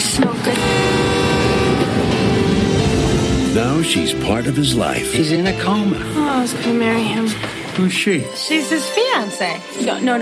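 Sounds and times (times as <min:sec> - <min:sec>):
approaching train rumbling: 0:00.0 - 0:08.4
train horn: 0:00.2 - 0:04.0
speech: 0:03.6 - 0:10.1.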